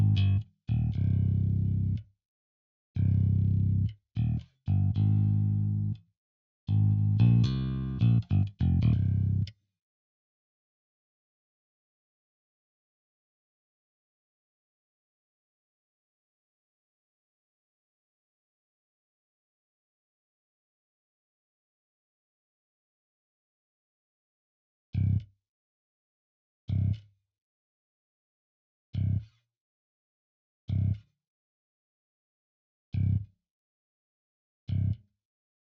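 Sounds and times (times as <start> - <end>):
bass: 0.0 - 2.1, 3.0 - 6.0, 6.7 - 9.6, 25.0 - 25.3, 26.7 - 27.1, 29.0 - 29.3, 30.7 - 31.0, 32.9 - 33.3, 34.7 - 35.0.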